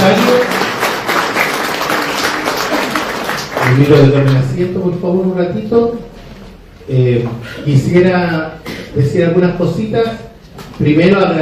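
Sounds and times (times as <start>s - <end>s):
crowd applause: 0.0s - 4.6s
speech: 3.8s - 6.1s, 6.9s - 11.4s.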